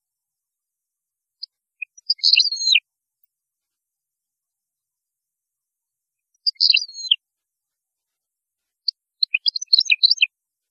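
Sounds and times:
European goldfinch song: 1.4 - 2.8, 6.3 - 7.2, 8.8 - 10.4.

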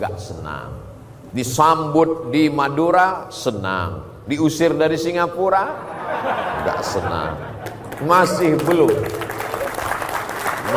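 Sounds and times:
speech: 0.0 - 9.2
laughter: 5.6 - 8.8
crowd audience applauding: 7.6 - 10.7.

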